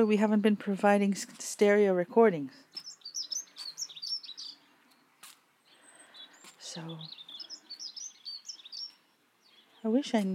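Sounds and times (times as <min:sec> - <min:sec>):
speech: 0:00.0 - 0:02.9, 0:06.8 - 0:07.2, 0:09.8 - 0:10.3
wild birds chirping and trilling: 0:02.6 - 0:10.3.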